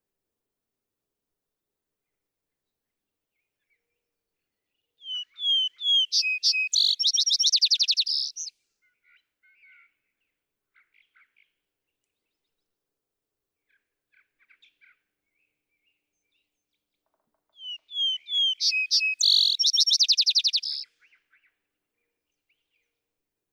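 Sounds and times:
vesper sparrow song: 0:03.3 - 0:12.6, 0:13.6 - 0:23.0.

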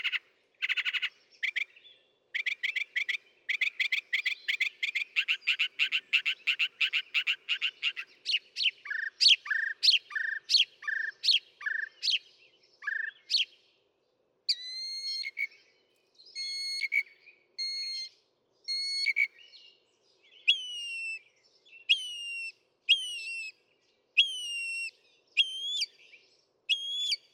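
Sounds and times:
Northern mockingbird song: 0:00.0 - 0:27.3.

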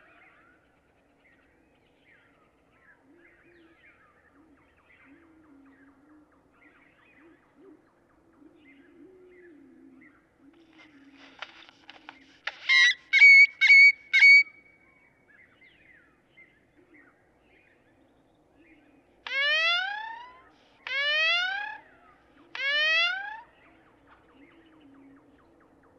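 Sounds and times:
Great-tailed Grackle calling: 0:10.6 - 0:14.7, 0:19.2 - 0:23.6.

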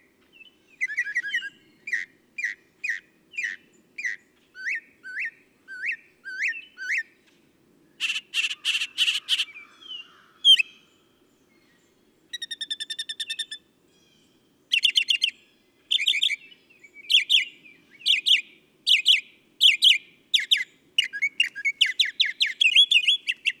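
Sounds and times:
northern mockingbird singing: 0:00.3 - 0:07.1, 0:08.0 - 0:10.9, 0:12.3 - 0:23.5.

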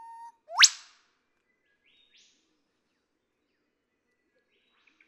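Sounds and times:
Eastern whipbird whip-crack song: 0:00.2 - 0:01.0.

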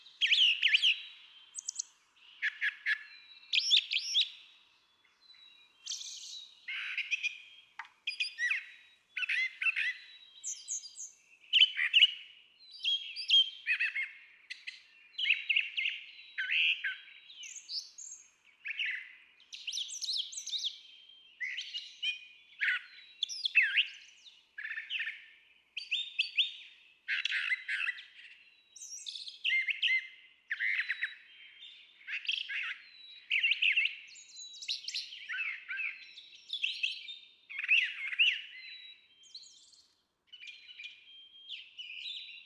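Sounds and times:
Brown Thrasher singing varied whistles, rasping notes and chirps: 0:00.0 - 0:42.4.

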